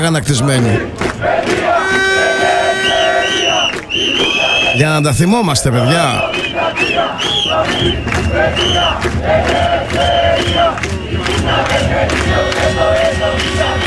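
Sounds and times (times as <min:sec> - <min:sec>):
speech: 0:00.0 - 0:01.6, 0:04.8 - 0:06.5, 0:07.2 - 0:13.7
protest crowd shouting and chanting: 0:00.0 - 0:13.8.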